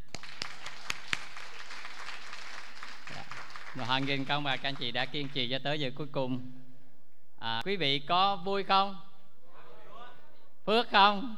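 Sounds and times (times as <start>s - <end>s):
seated audience applause at the close of a church camp: 0.0s - 5.5s
speech: 3.8s - 6.6s, 7.4s - 9.1s, 10.6s - 11.3s.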